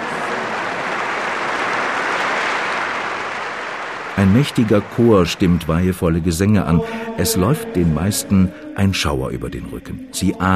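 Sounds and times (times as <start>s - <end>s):
citizens of Rome applauding loudly: 0.0s - 7.6s
speech: 4.3s - 10.5s.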